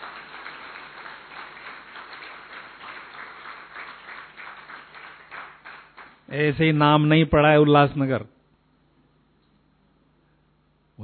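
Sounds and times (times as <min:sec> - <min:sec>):
audience clapping: 0:00.0 - 0:06.3
speech: 0:06.3 - 0:08.3.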